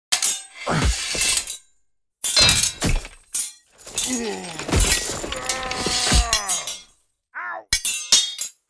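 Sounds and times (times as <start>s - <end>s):
knight duel sword clashes and hits: 0.1s - 1.6s, 2.2s - 6.9s
knights' battle cries: 4.0s - 6.8s.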